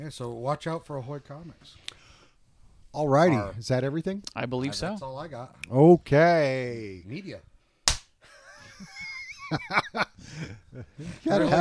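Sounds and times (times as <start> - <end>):
speech: 0.0 - 2.0, 2.9 - 7.5, 9.5 - 11.5
hand clap: 7.9 - 8.1
laughter: 8.3 - 11.5.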